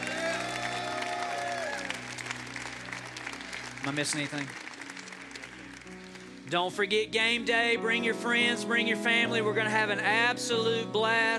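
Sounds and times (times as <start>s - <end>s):
audience clapping hands in praise: 0.0s - 6.6s
speech: 3.8s - 4.6s, 6.5s - 11.3s.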